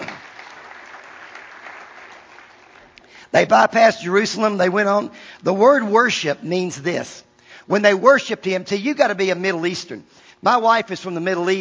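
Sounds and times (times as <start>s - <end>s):
crowd clapping: 0.0s - 3.1s
speech: 3.3s - 11.5s.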